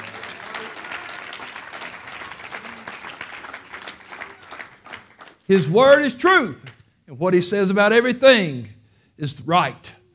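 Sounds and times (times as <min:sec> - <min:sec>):
audience clapping hands: 0:00.0 - 0:06.8
speech: 0:05.5 - 0:09.9.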